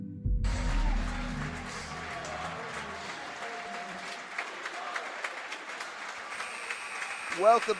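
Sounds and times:
crowd applauding in basketball arena: 0.5 - 7.7.

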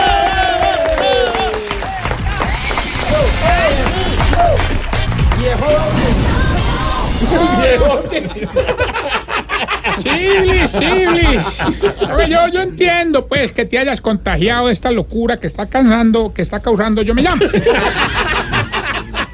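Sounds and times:
applause and clapping: 0.0 - 6.2
laughter: 7.2 - 12.8, 17.1 - 19.3
speech: 10.0 - 18.4.

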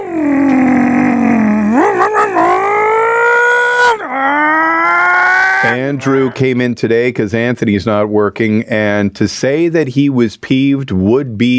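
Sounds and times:
voice imitating a muscle car engine revving: 0.0 - 6.5
speech: 5.8 - 11.5.

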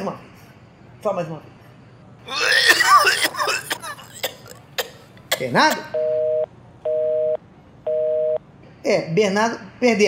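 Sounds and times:
speech: 0.1 - 0.3, 1.0 - 1.6, 2.2 - 2.7, 5.4 - 6.0, 8.9 - 10.0
telephone busy tone after a dropped phone call: 6.0 - 8.4.

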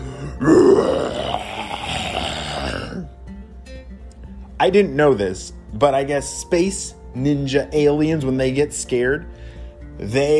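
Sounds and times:
voice imitating a ginormous roar: 0.2 - 3.1
speech: 0.4 - 1.2, 4.6 - 9.4, 10.0 - 10.3.

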